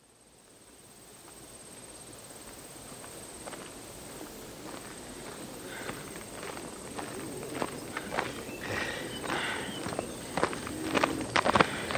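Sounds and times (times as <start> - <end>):
hiss: 0.0 - 11.9
Roman legionaries marching uphill from the Werra river to a camp: 2.4 - 11.9.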